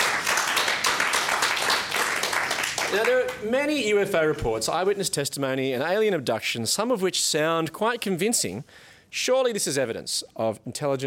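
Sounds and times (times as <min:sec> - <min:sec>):
audience applause: 0:00.0 - 0:03.4
speech: 0:02.9 - 0:11.0.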